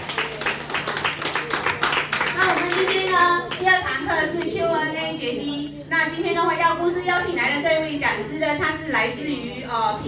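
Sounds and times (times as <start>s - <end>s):
audience applause: 0.0s - 3.0s
speech: 3.6s - 10.0s.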